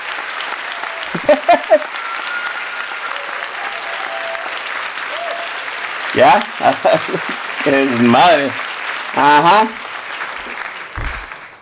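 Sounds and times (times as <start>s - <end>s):
crowd applause: 0.0s - 11.5s
laughter: 0.8s - 4.4s, 6.2s - 8.6s
speech: 1.2s - 1.9s, 6.2s - 8.6s, 9.2s - 9.8s
low thump: 11.0s - 11.4s.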